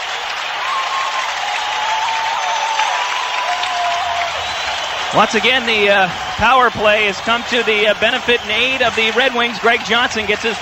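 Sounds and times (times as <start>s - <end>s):
hockey arena crowd cheering after goal: 0.0s - 10.6s
speech: 5.1s - 10.6s.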